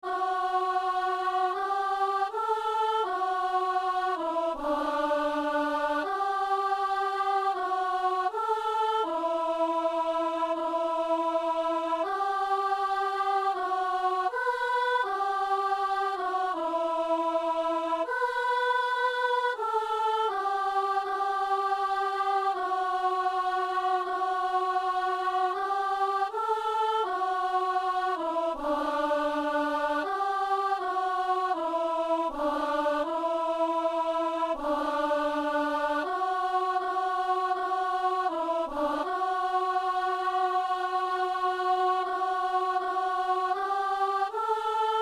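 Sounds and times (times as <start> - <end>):
soprano singing: 0.0 - 45.0.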